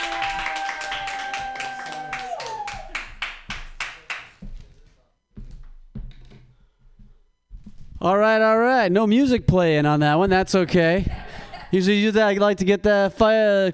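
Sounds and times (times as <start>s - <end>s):
audience clapping: 0.0s - 4.6s
speech: 8.0s - 13.7s.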